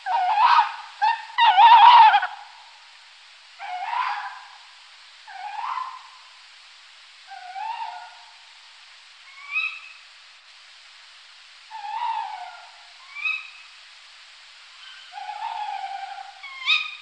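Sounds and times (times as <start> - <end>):
tawny owl hooting: 0.0 - 2.8, 3.6 - 6.4, 7.2 - 8.5, 9.2 - 10.1, 11.7 - 13.8, 14.7 - 17.0.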